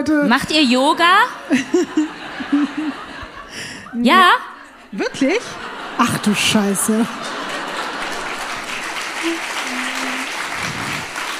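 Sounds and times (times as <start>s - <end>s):
speech: 0.0s - 7.4s, 9.2s - 9.5s
laughter: 1.2s - 11.3s
audience clapping: 6.2s - 11.3s.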